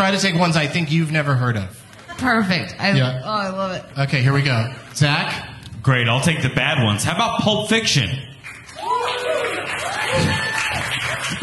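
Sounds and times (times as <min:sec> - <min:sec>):
speech: 0:00.0 - 0:08.3
audience clapping: 0:08.4 - 0:11.4.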